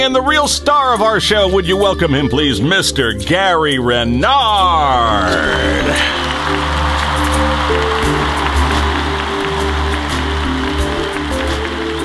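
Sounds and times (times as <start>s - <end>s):
speech: 0.0s - 6.8s
thunderous crowd applause: 5.4s - 12.0s.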